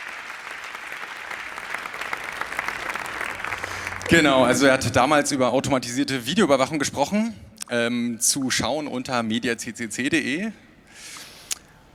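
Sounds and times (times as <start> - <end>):
audience applause: 0.0 - 4.8
speech: 4.1 - 10.6.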